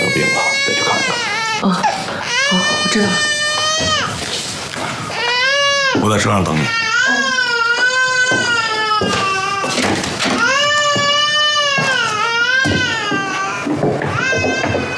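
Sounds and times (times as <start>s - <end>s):
baby crying after waking up: 0.0s - 4.2s, 5.1s - 14.9s
speech: 0.2s - 0.4s, 1.6s - 1.9s, 2.5s - 3.4s, 6.0s - 6.9s.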